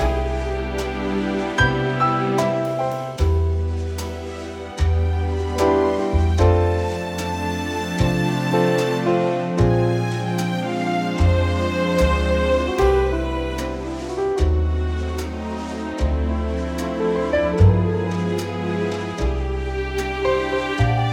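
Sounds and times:
dreamy orchestral arrangement in C: 0:00.0 - 0:21.1.

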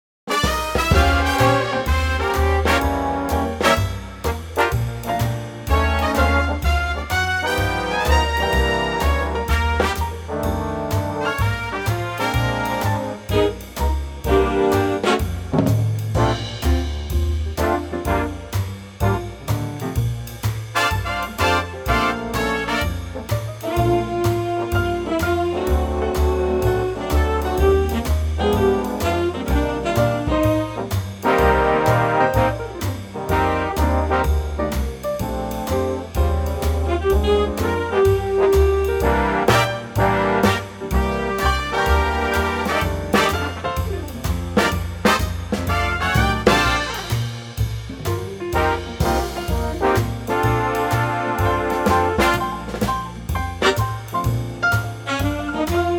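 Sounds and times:
big band playing in B-flat: 0:00.3 - 0:55.9.

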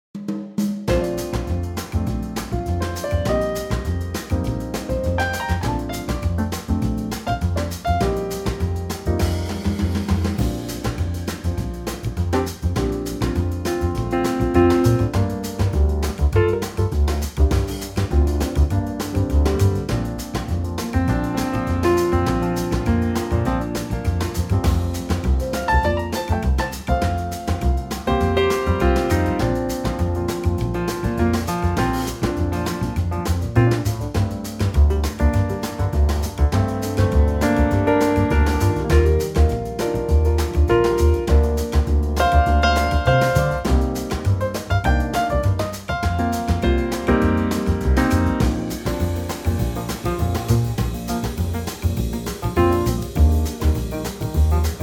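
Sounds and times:
latin trio music in B flat: 0:00.2 - 0:54.8.

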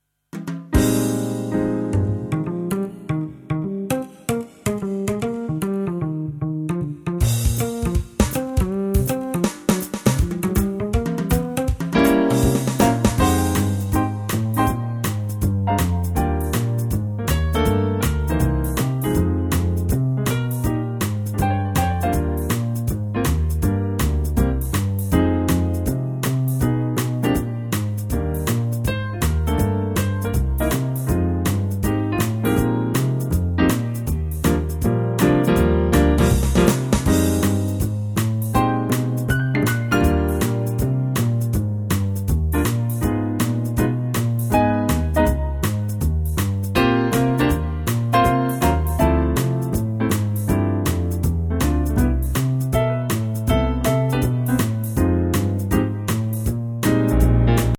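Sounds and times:
swing music in E flat: 0:00.3 - 0:57.7.

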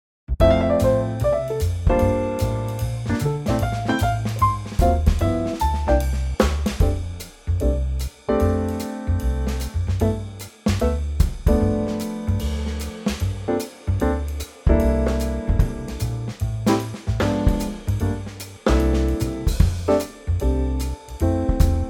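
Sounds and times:
jazz music: 0:00.4 - 0:21.8.

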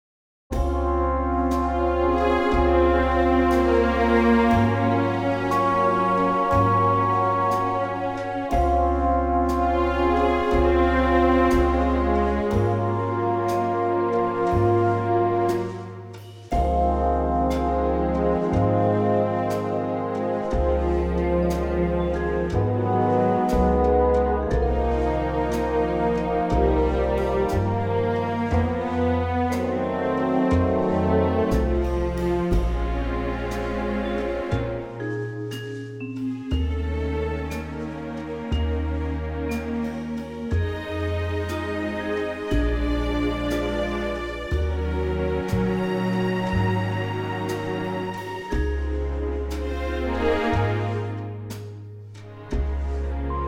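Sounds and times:
orchestral chord in D flat: 0:00.5 - 0:53.4.

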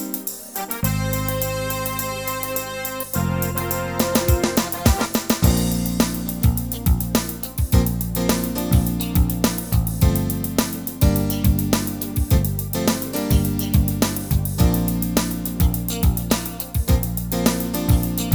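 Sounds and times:
live music track in B flat: 0:00.5 - 0:18.3.

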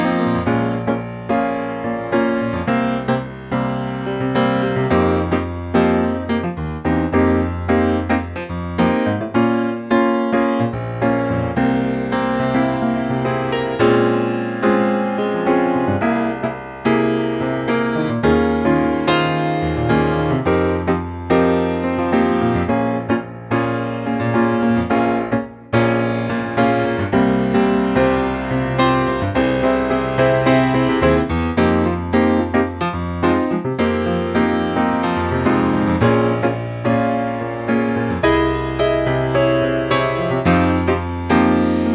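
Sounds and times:
piano piece in Fm and Gbm: 0:00.0 - 0:41.9.

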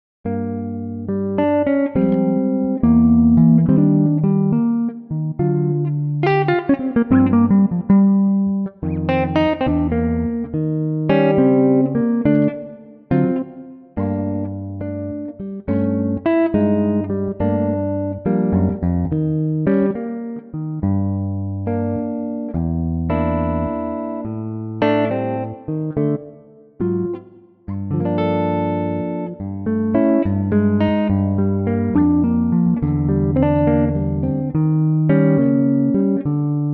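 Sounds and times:
Gibson Les Paul electric guitar in G minor: 0:00.3 - 0:36.7.

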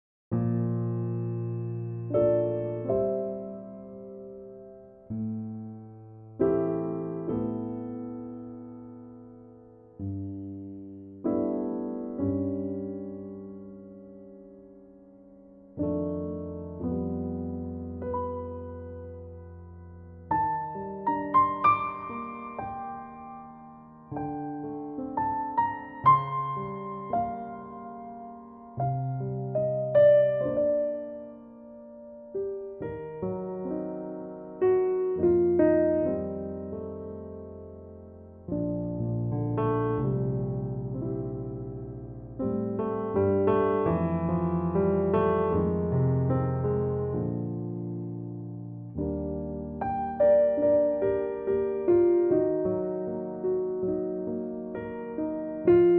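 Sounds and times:
piano in B flat: 0:00.3 - 0:55.9.

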